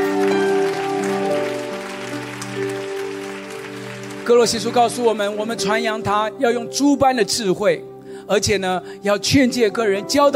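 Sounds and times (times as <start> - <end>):
audience clapping: 0.0 - 6.1
speech: 4.3 - 10.3.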